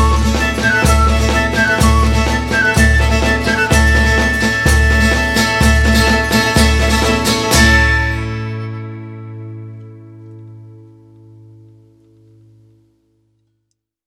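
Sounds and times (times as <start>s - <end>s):
toada and dobrado folk march music of cavalhada: 0.0s - 9.0s.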